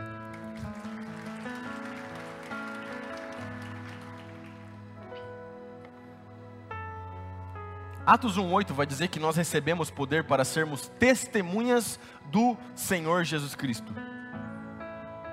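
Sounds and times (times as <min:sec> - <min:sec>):
audience applause: 0:00.0 - 0:04.9
speech: 0:08.1 - 0:14.0.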